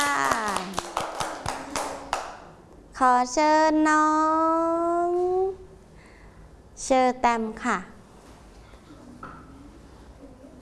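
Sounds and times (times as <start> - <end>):
children clapping in a classroom: 0.0 - 2.5
speech: 3.0 - 5.6, 6.8 - 7.9.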